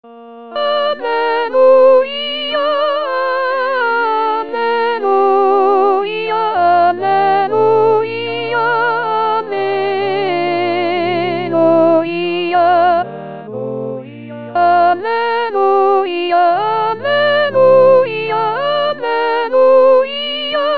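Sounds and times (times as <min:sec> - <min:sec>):
soprano singing an alleluia: 0:00.1 - 0:20.7.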